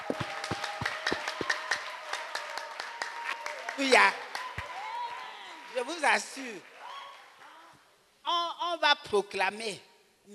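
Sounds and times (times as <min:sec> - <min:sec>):
audience clapping in rhythm: 0:00.0 - 0:07.4
speech: 0:00.1 - 0:00.4, 0:03.8 - 0:04.2, 0:05.8 - 0:06.7, 0:08.7 - 0:10.3.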